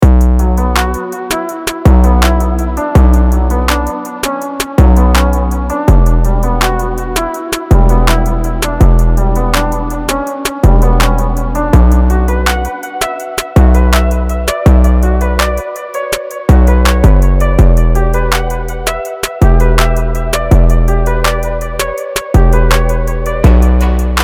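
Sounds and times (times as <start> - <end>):
music beat: 0.0 - 24.2.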